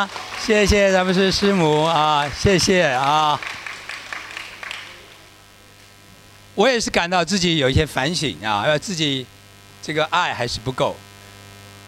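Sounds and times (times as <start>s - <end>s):
speech: 0.0s - 3.6s, 6.6s - 11.1s
audience applause: 0.0s - 5.3s.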